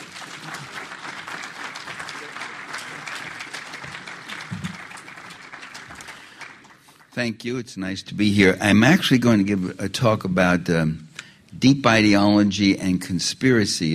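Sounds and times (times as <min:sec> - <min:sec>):
audience applause: 0:00.0 - 0:07.2
speech: 0:07.2 - 0:11.0, 0:11.6 - 0:13.9.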